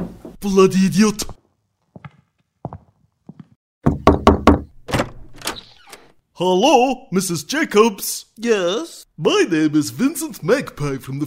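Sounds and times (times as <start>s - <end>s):
speech: 0.4s - 1.4s, 6.4s - 11.2s
knocking on a door: 3.8s - 4.7s.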